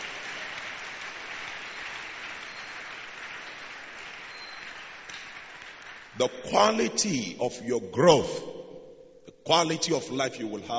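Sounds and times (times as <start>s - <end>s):
audience clapping: 0.0s - 6.9s
speech: 6.2s - 8.6s, 9.5s - 10.7s.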